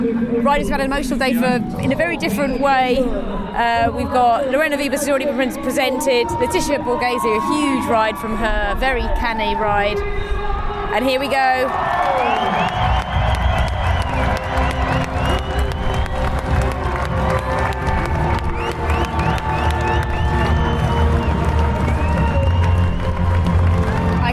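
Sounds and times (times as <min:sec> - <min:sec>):
speech: 0:00.4 - 0:13.0
crowd cheering at podium: 0:05.2 - 0:24.3.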